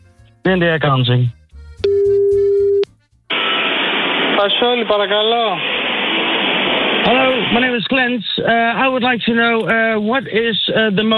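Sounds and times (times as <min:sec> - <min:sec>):
speech: 0:00.4 - 0:01.4, 0:04.4 - 0:05.7, 0:07.0 - 0:11.1
telephone dial tone while dialing a new number: 0:01.8 - 0:02.8
hissing telephone line noise: 0:03.3 - 0:08.1.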